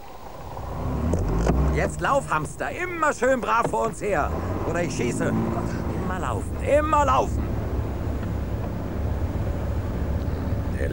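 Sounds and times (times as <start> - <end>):
car engine rumbling while creeping at walking pace behind a running man: 0.0 - 10.9
speech: 1.8 - 7.4.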